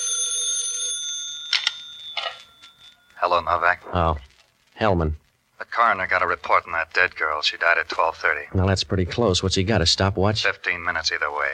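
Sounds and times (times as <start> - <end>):
old-fashioned telephone bell ringing: 0.0 - 3.2
speech: 3.2 - 11.5.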